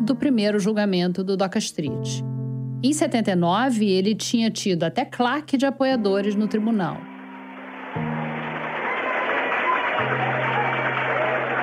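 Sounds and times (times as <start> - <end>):
speech: 0.1 - 7.1
crowd applauding: 7.1 - 11.6.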